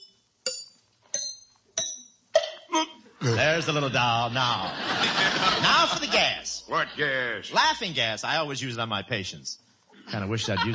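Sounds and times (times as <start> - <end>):
tooth tapped lightly with a hammer: 0.0 - 2.6
speech: 2.8 - 10.7
laughter: 3.2 - 7.2, 10.1 - 10.7.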